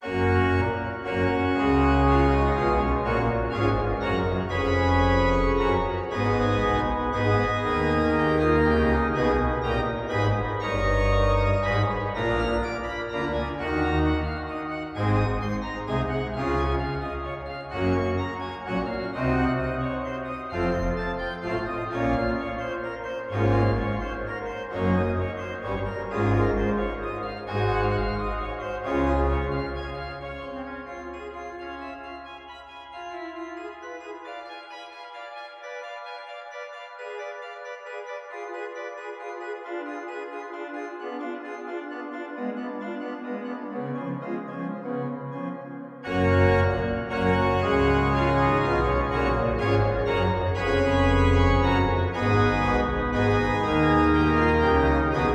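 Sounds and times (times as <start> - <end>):
grand choeur organ piece: 0.0 - 55.3.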